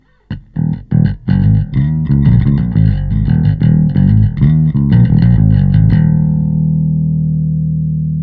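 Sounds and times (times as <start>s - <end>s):
bass through amp: 0.0s - 8.2s.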